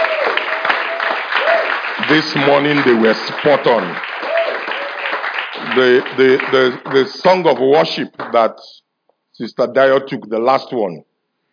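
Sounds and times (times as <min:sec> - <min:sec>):
audience clapping: 0:00.0 - 0:08.6
speech: 0:02.1 - 0:04.1, 0:05.8 - 0:08.8, 0:09.4 - 0:11.1.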